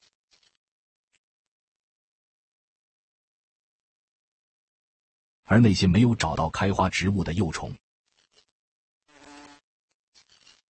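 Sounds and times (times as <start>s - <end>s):
flower fly buzzing: 0.0s - 0.6s, 8.1s - 10.6s
speech: 5.5s - 7.8s.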